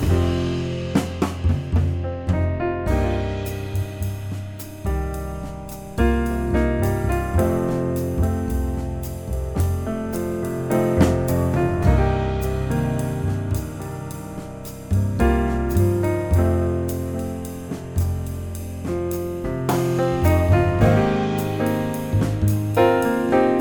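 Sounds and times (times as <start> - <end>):
backing track music in C minor: 0.0 - 23.5.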